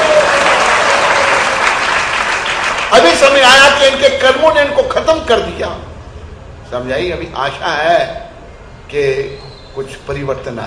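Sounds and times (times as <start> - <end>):
audience applause: 0.0 - 3.4
speech: 3.0 - 5.9, 6.7 - 8.2, 8.9 - 10.6.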